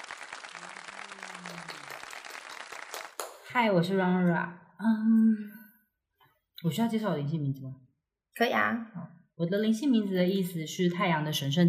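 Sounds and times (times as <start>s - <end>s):
applause, clapping: 0.0s - 3.5s
speech: 3.6s - 5.6s, 6.6s - 7.8s, 8.4s - 11.6s.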